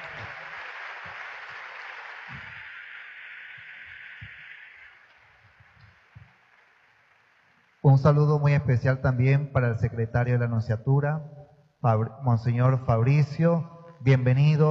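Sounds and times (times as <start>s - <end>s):
audience applause: 0.0s - 7.9s
speech: 7.9s - 14.6s.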